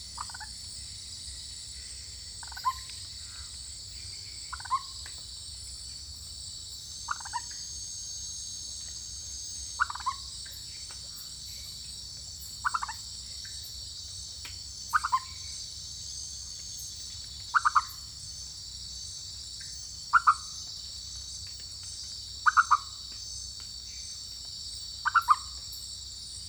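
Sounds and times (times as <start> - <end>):
Leptodactylus frog calling in French Guiana: 0.2 - 0.5, 4.5 - 5.0, 7.1 - 7.6, 9.8 - 10.3, 12.6 - 13.0, 14.9 - 15.6, 17.5 - 18.1, 20.1 - 20.7, 22.4 - 23.0, 25.0 - 25.6.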